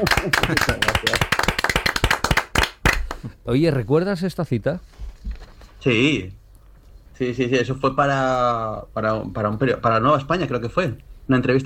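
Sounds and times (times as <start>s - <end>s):
speech: 0.0s - 1.5s, 3.5s - 5.0s, 5.8s - 6.4s, 7.2s - 11.6s
audience applause for a guest on a talk show: 0.0s - 3.2s.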